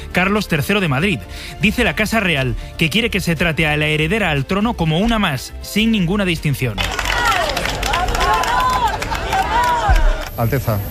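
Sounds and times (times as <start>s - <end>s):
speech: 0.2s - 7.0s, 10.4s - 10.8s
crowd shouting compliments at arrival: 6.8s - 10.3s.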